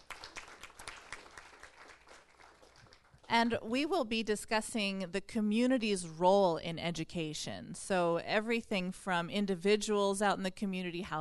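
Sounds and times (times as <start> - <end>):
audience applause: 0.0 - 3.3
speech: 3.3 - 11.1.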